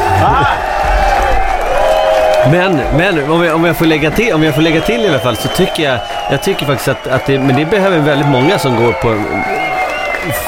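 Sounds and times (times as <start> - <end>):
applause: 0.6 - 10.4
speech: 2.5 - 9.6, 10.2 - 10.4.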